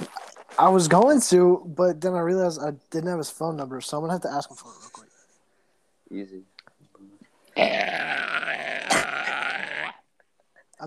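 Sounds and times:
speech: 0:00.6 - 0:05.0, 0:06.1 - 0:06.5, 0:07.6 - 0:08.7
person imitating a goat: 0:07.6 - 0:10.0.

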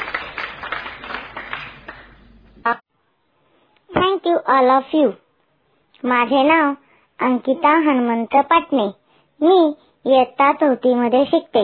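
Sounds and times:
schoolchildren in a classroom clapping to welcome a schoolmate: 0:00.0 - 0:02.6
speech: 0:02.6 - 0:02.8, 0:04.2 - 0:05.2, 0:06.0 - 0:11.6.

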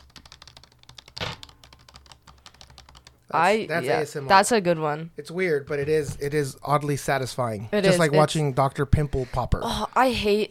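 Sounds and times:
rapid typing on a computer keyboard: 0:00.0 - 0:03.2
speech: 0:03.3 - 0:10.4.

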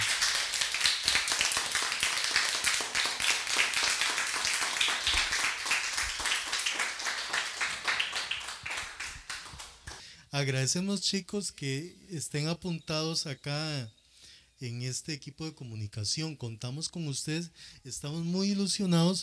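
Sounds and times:
crowd applauding: 0:00.0 - 0:10.0
speech: 0:10.4 - 0:14.0, 0:14.6 - 0:19.2.

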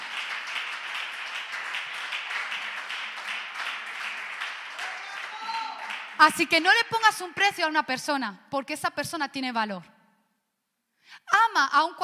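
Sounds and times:
audience applause: 0:00.0 - 0:06.2
speech: 0:06.2 - 0:09.9, 0:11.1 - 0:12.0.

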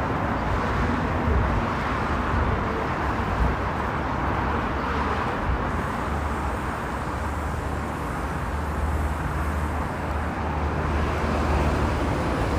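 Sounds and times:
bus engine and road noise on a bus ride in Dubai: 0:00.0 - 0:12.5.

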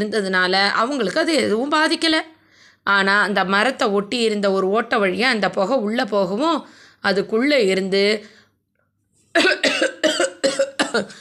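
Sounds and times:
speech: 0:00.0 - 0:08.4, 0:09.4 - 0:11.2
old man coughing from smoke in a tree hollow: 0:09.4 - 0:11.2.

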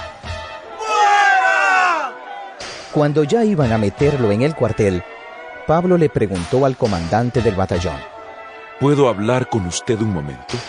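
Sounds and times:
crowd shouting: 0:00.6 - 0:04.2
speech: 0:03.0 - 0:05.1, 0:05.7 - 0:08.1, 0:08.8 - 0:10.6.

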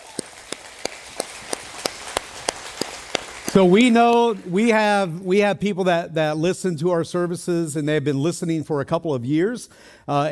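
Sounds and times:
audience clapping in rhythm: 0:00.0 - 0:05.2
speech: 0:03.5 - 0:10.3.

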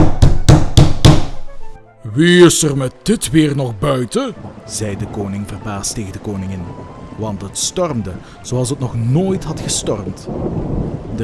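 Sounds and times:
pounding knock on a palace door: 0:00.0 - 0:01.4
speech: 0:02.2 - 0:11.2.

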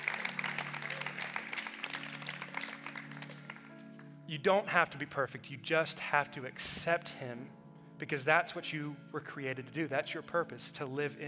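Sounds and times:
audience applause: 0:00.0 - 0:03.7
speech: 0:04.3 - 0:11.2.

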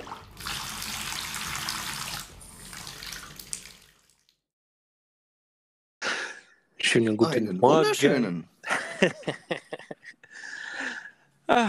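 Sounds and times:
cold water running from a tap into a bathtub: 0:00.0 - 0:04.4
speech: 0:06.9 - 0:10.6, 0:11.5 - 0:11.6
laughter: 0:08.6 - 0:10.3.

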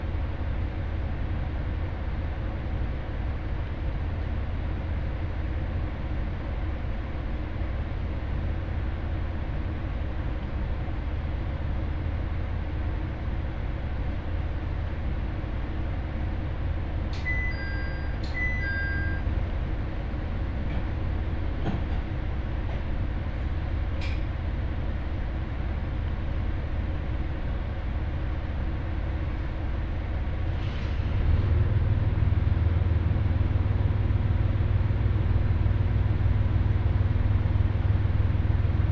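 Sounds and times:
Ihara Railway train carriage rumbling: 0:00.0 - 0:38.9
short high chimes: 0:17.3 - 0:19.2.

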